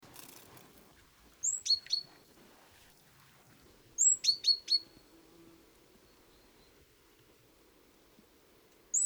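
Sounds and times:
rustling: 0.0 - 6.8
great tit calling: 0.1 - 2.7, 4.0 - 5.1.

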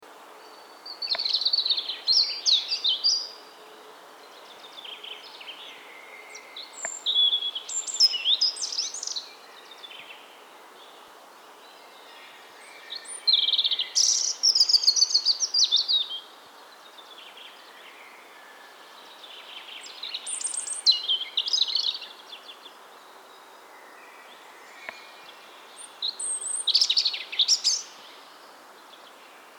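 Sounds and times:
European robin twittering song: 0.4 - 3.4, 4.3 - 11.0, 11.6 - 29.2.

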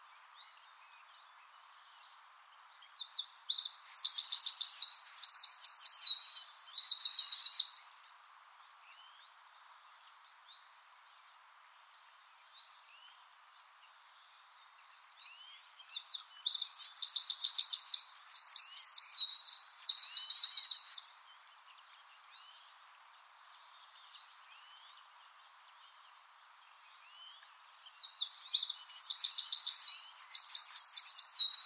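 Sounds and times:
Eurasian wren singing trills: 2.6 - 8.0, 15.3 - 21.3, 27.1 - 31.6.

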